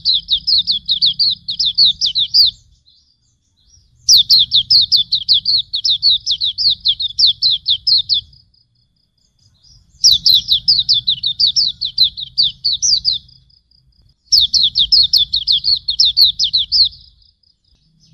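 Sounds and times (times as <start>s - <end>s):
pleci auri bird calling: 0.0s - 8.6s, 9.2s - 13.6s, 14.2s - 18.0s.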